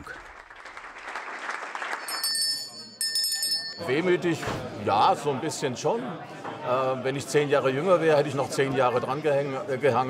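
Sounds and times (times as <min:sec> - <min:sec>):
group applauding at a parliamentary group meeting: 0:00.0 - 0:03.2
thin ringing tones: 0:02.1 - 0:04.2
speech: 0:03.8 - 0:10.0.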